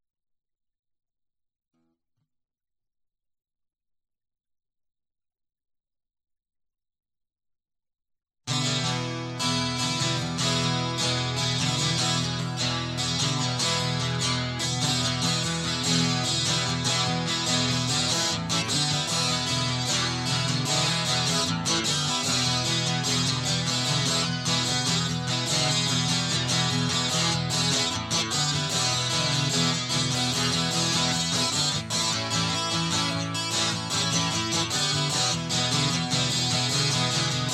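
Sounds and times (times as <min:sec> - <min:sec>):
guitar: 0:08.5 - 0:37.5.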